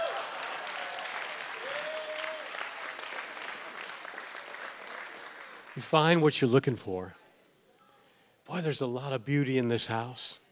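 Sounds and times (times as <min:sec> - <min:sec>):
audience cheering: 0:00.0 - 0:03.8
audience applauding: 0:00.0 - 0:05.9
speech: 0:05.8 - 0:07.2, 0:08.6 - 0:10.4.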